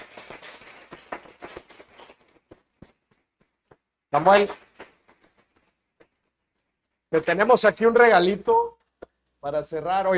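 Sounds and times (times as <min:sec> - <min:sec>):
audience applause: 0:00.0 - 0:02.2
speech: 0:04.1 - 0:04.6, 0:07.1 - 0:08.6, 0:09.4 - 0:10.1.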